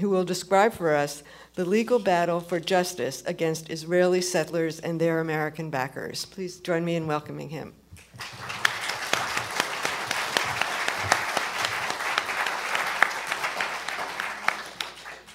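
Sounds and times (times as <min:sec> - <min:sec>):
speech: 0:00.0 - 0:08.6
applause: 0:08.0 - 0:15.3.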